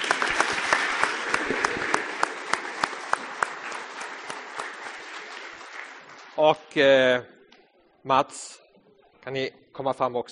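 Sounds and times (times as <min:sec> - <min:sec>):
audience applause: 0:00.0 - 0:06.8
speech: 0:06.4 - 0:07.3, 0:08.0 - 0:08.6, 0:09.2 - 0:10.3.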